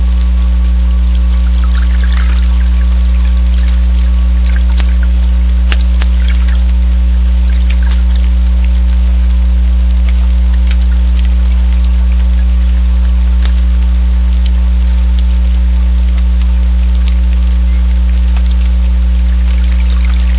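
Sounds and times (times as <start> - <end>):
background hum of a powerboat: 0.0 - 20.3.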